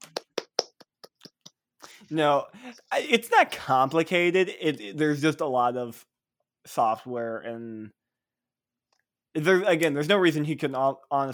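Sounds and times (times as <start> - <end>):
hand claps: 0.0 - 2.0
speech: 2.1 - 8.0, 9.3 - 11.3.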